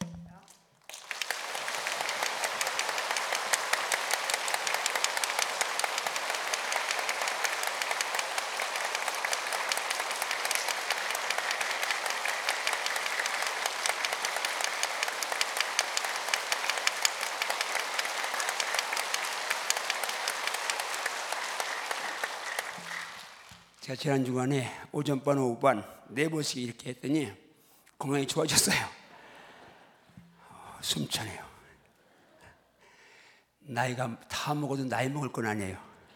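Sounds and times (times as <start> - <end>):
crowd clapping: 0.0 - 24.0
speech: 23.9 - 27.4, 28.0 - 29.0, 30.9 - 31.5, 33.8 - 35.9.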